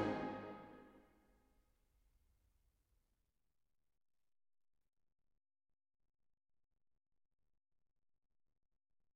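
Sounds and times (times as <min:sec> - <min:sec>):
orchestra playing a march: 0:00.0 - 0:00.6.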